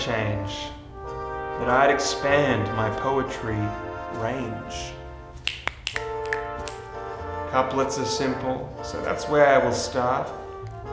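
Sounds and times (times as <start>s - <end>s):
speech: 0.0s - 0.8s, 1.6s - 5.0s, 7.5s - 10.4s
finger snapping in appreciation of poetry: 5.4s - 7.0s.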